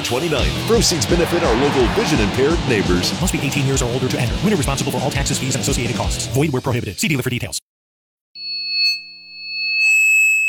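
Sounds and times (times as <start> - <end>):
speech: 0.1 - 7.6
high-pitched tinnitus ear ringing tone: 8.4 - 10.4.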